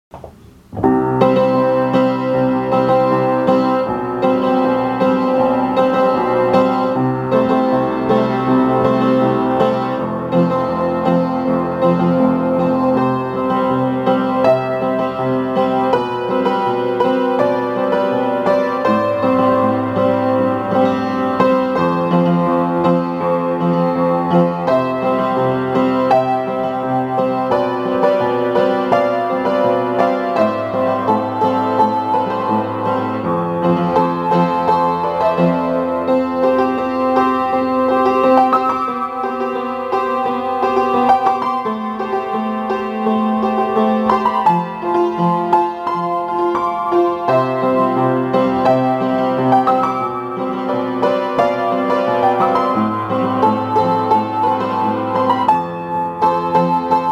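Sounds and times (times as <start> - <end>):
piano cover: 0.1 - 57.0.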